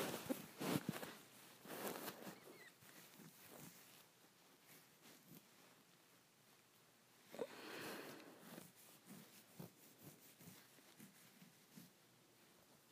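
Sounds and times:
fingers scratching a head: 0.0 - 5.5, 8.1 - 12.0.

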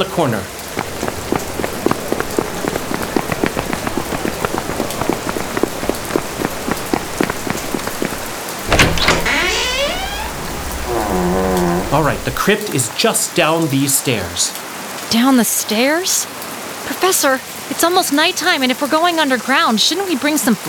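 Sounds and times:
speech: 0.0 - 0.6, 11.9 - 20.6
heavy rain falling: 0.6 - 12.6.

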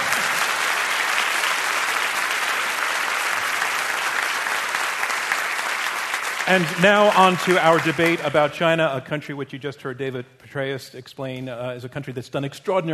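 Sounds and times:
audience applause: 0.0 - 8.6
speech: 6.5 - 12.9.

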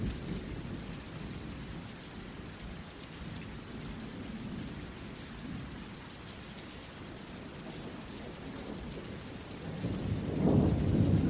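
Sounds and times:
heavy rain: 0.0 - 11.2
thunder: 8.8 - 11.2.

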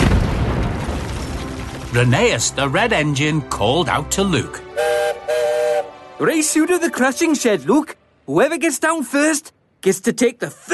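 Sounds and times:
explosive blast in a quarry: 0.0 - 2.0
speech: 1.9 - 5.4, 6.2 - 10.7.

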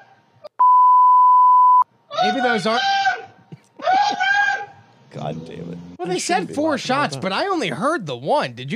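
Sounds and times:
censor bleep: 0.6 - 1.9
speech: 2.3 - 3.0, 5.2 - 8.7.

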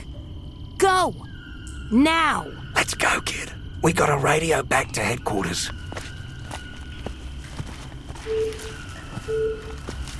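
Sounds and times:
speech: 0.8 - 1.3, 1.9 - 5.8
electronic beeping: 8.2 - 9.9.

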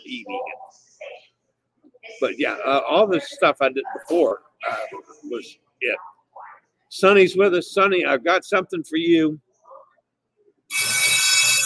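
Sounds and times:
speech: 2.2 - 6.1, 6.9 - 9.4
alarm ringing: 10.7 - 11.6.

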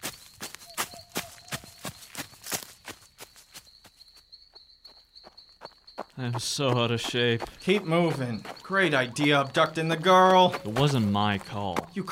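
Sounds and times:
footsteps of several people running: 0.0 - 3.6, 6.0 - 12.1
speech: 6.2 - 12.1.

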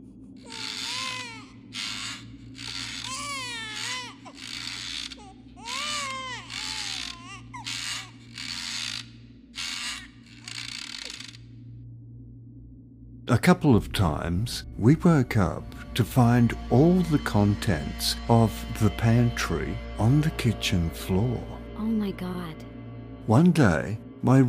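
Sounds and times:
rocking chair creaking: 0.4 - 11.4
speech: 13.3 - 21.6, 22.2 - 24.4.

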